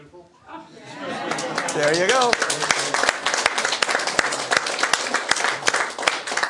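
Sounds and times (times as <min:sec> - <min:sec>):
laughter: 0:00.5 - 0:03.2
audience applause: 0:01.0 - 0:06.4
speech: 0:01.8 - 0:02.7.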